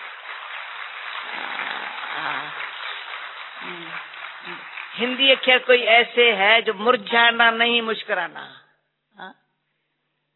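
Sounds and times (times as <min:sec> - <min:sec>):
audience clapping along to a Hindi devotional song: 0:00.0 - 0:06.7
speech: 0:03.6 - 0:08.6, 0:09.2 - 0:09.4.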